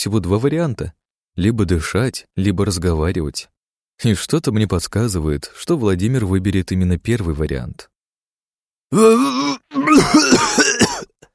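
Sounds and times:
speech: 0.0s - 7.9s, 8.9s - 11.1s
man mumbling, muffled: 8.9s - 11.0s
man coughing roughly: 9.0s - 11.3s.

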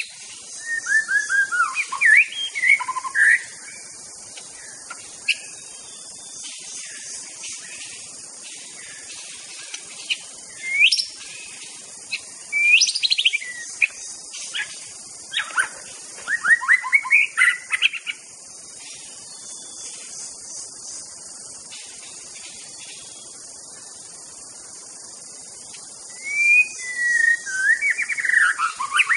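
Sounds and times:
wild white-rumped shama singing in forest: 0.6s - 3.5s, 10.6s - 11.2s, 12.1s - 14.7s, 15.3s - 18.2s, 26.1s - 29.1s.

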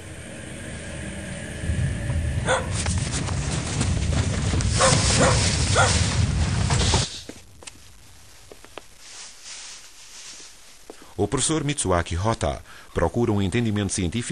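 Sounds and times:
steady low rumble: 0.0s - 7.1s
dog barking: 2.4s - 2.8s, 4.8s - 6.0s
speech: 11.3s - 14.3s.

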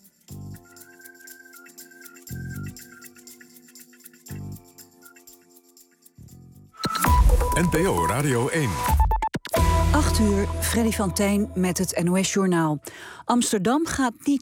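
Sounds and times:
high melodic line: 6.8s - 12.8s
radio station 8 o'clock time signal ticking before the news: 6.9s - 12.4s
speech: 7.6s - 9.0s, 9.9s - 14.4s.

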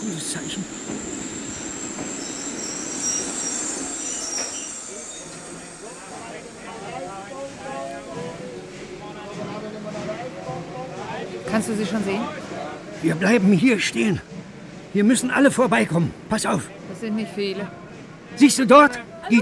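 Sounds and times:
train arriving at station, wheels squealing: 0.0s - 8.4s
train rolling into a station, low rumble: 0.0s - 18.3s
speech: 0.2s - 0.9s, 11.6s - 12.4s, 13.0s - 14.3s, 14.9s - 17.8s, 18.4s - 19.4s
murmur of voices: 4.5s - 19.4s.

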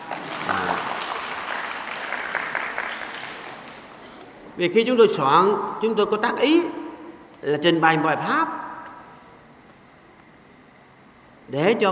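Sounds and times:
audience applause at a Buddhist dharma talk: 0.0s - 4.1s
speech: 4.6s - 6.8s, 7.4s - 8.6s, 11.5s - 11.9s.

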